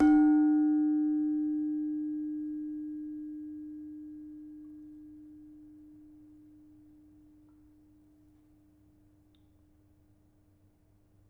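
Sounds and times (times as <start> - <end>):
demung gamelan metallophone: 0.0 - 5.4.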